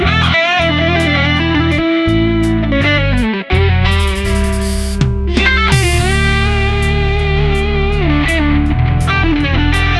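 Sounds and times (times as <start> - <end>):
electric guitar: 0.0 - 9.9.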